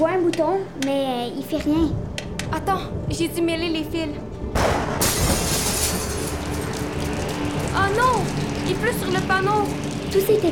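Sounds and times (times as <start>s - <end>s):
speech: 0.0s - 5.3s, 7.8s - 10.5s
low rumbling: 1.8s - 10.5s
noisy debris falling: 4.6s - 10.1s
window glass shattering: 4.7s - 7.6s.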